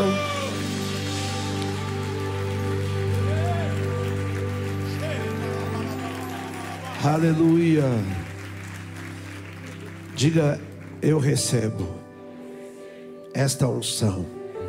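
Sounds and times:
audience applauding: 0.0s - 11.6s
speech: 7.0s - 8.2s, 10.2s - 12.0s, 13.3s - 14.4s.

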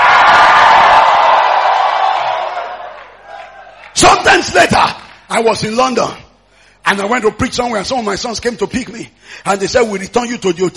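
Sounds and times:
church congregation shouting and cheering: 0.0s - 4.9s
speech: 4.3s - 6.2s, 6.8s - 10.7s.

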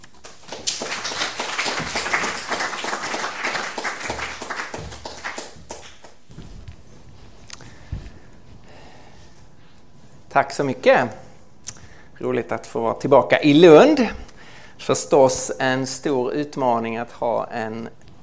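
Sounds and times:
audience applauding: 0.0s - 6.3s
speech: 10.4s - 11.2s, 12.2s - 14.2s, 14.9s - 18.0s.

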